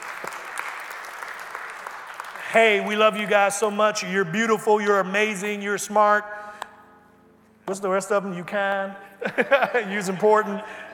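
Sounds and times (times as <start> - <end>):
audience applause, hand clapping: 0.0 - 3.8
speech: 2.5 - 6.4, 7.7 - 10.9
laughter: 9.2 - 10.9.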